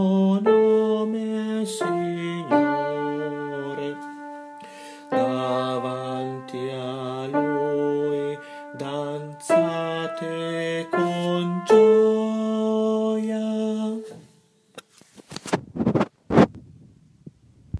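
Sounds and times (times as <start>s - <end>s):
contralto voices singing: 0.0s - 4.4s, 5.0s - 14.2s.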